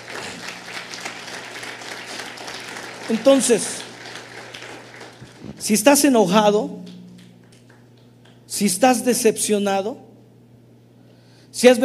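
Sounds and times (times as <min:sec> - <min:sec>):
audience applause: 0:00.0 - 0:05.7
speech: 0:03.1 - 0:03.8, 0:05.6 - 0:06.9, 0:08.6 - 0:10.1, 0:11.6 - 0:11.8.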